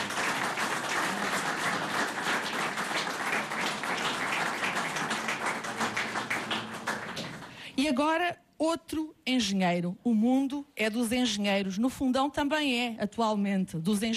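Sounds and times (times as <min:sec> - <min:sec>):
audience applause: 0:00.0 - 0:07.6
speech: 0:07.8 - 0:14.1.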